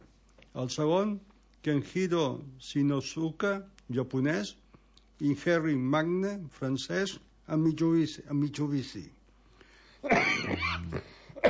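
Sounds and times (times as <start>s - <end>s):
speech: 0.6s - 4.6s, 5.2s - 9.2s
person coughing harshly: 10.0s - 11.4s.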